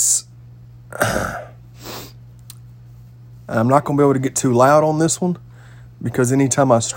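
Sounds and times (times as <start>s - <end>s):
person coughing: 0.9s - 1.6s
speech: 3.5s - 6.9s.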